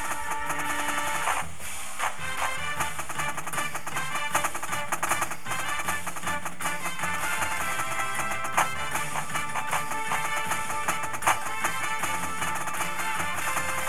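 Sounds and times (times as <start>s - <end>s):
snare drum: 0.0s - 13.8s.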